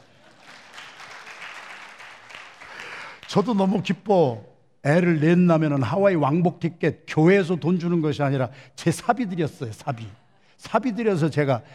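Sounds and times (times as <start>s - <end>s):
welcoming applause from audience: 0.0s - 3.3s
speech: 3.3s - 11.7s.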